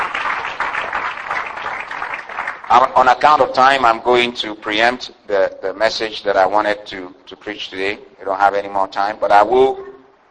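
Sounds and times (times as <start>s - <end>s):
church congregation clapping: 0.0s - 4.0s
speech: 2.7s - 9.8s.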